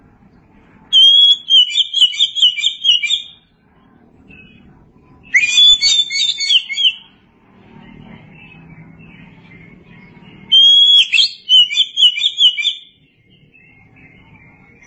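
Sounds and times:
Oriental magpie-robin singing: 0:00.9 - 0:03.4, 0:05.2 - 0:07.2, 0:07.8 - 0:14.8.

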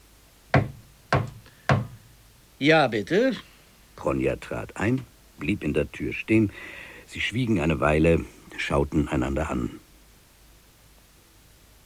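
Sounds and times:
knocking on a door: 0:00.5 - 0:02.0
speech: 0:02.6 - 0:09.8.

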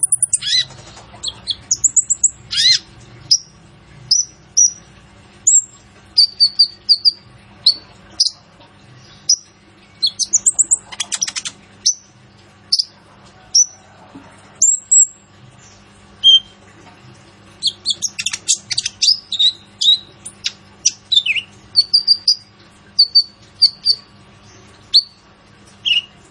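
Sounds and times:
Purple-throated sunbird song: 0:00.0 - 0:03.5, 0:05.5 - 0:08.4, 0:09.3 - 0:12.1, 0:16.2 - 0:16.6, 0:17.6 - 0:24.1, 0:24.9 - 0:25.2, 0:25.8 - 0:26.2.

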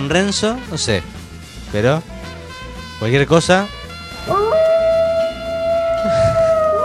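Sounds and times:
speech: 0:00.0 - 0:02.4, 0:03.0 - 0:04.5
wolf howling: 0:04.2 - 0:06.8.

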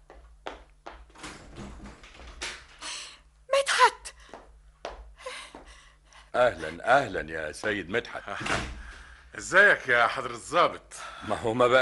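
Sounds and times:
door being opened: 0:01.2 - 0:02.8
speech: 0:06.4 - 0:08.8, 0:09.4 - 0:11.8.

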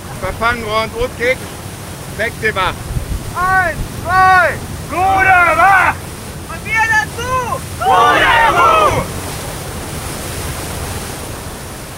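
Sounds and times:
headwind at sea: 0:00.0 - 0:11.9
ocean waves at sea: 0:00.0 - 0:11.9
speech: 0:00.2 - 0:01.6, 0:02.2 - 0:06.0, 0:06.8 - 0:09.1.

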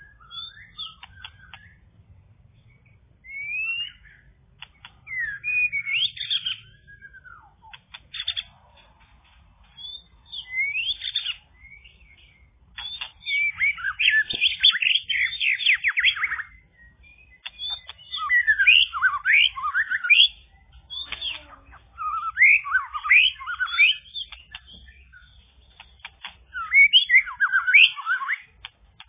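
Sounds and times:
bird singing whistled notes and chirping twitters: 0:00.0 - 0:29.0.

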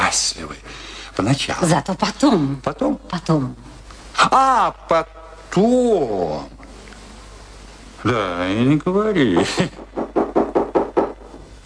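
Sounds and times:
speech: 0:00.2 - 0:06.6, 0:08.0 - 0:10.0
knocking on a door: 0:09.4 - 0:11.3.

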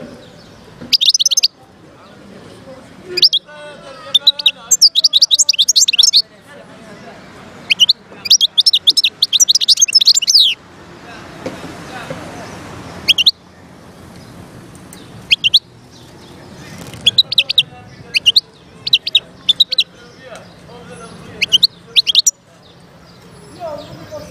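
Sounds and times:
wild European goldfinch singing: 0:00.4 - 0:01.6, 0:03.1 - 0:06.2, 0:07.6 - 0:10.6, 0:13.0 - 0:13.4, 0:15.0 - 0:22.4.

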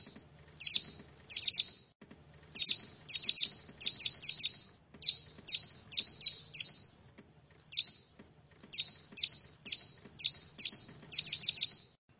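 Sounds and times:
bar-winged prinia giving high sharp down-slurred chirps: 0:00.0 - 0:01.9, 0:02.5 - 0:07.0, 0:07.7 - 0:12.0.

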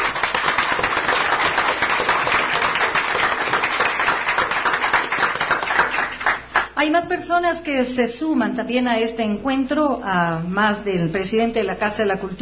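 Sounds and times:
audience applause at an award ceremony for new music in Ecuador: 0:00.0 - 0:06.7
speech: 0:06.8 - 0:12.4.

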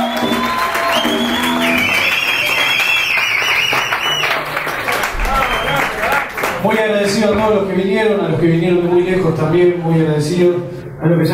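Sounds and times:
audience applause: 0:00.0 - 0:06.7
speech: 0:06.9 - 0:11.3.

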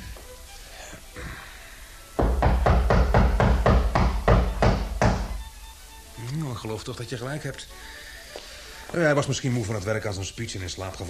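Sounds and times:
traveler knocking on a moonlit wooden door of flat number 3: 0:02.2 - 0:05.4
speech: 0:06.6 - 0:08.0, 0:08.9 - 0:11.0.

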